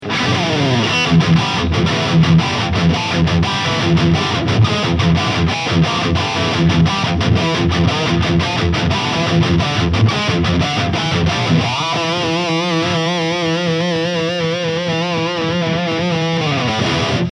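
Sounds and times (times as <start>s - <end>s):
LTD SC 20 high gain electric guitar: 0.0s - 17.3s.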